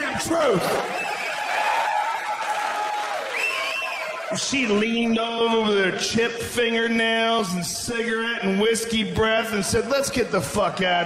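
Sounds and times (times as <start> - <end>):
people cheering: 0.0 - 5.0
speech: 0.2 - 1.0, 4.3 - 11.0.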